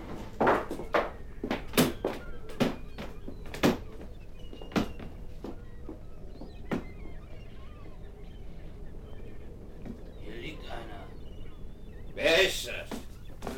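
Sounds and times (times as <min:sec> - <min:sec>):
banging on a door: 0:00.4 - 0:05.5.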